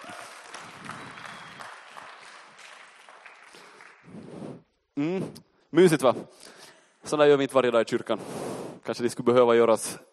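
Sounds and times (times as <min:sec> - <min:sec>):
audience applause: 0:00.0 - 0:04.1
speech: 0:05.0 - 0:10.1.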